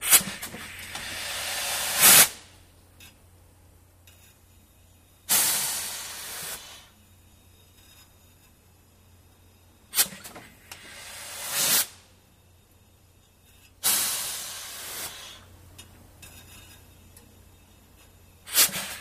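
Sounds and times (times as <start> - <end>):
cleaners steam press releasing air: 0.0 - 2.5, 5.3 - 7.0, 9.9 - 12.2, 13.8 - 15.5, 18.4 - 18.9.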